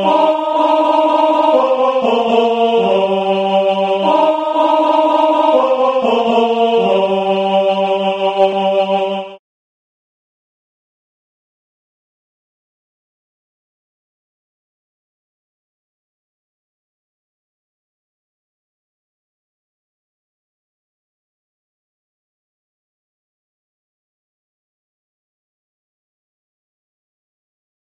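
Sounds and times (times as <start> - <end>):
alto voice singing: 0.0 - 9.4.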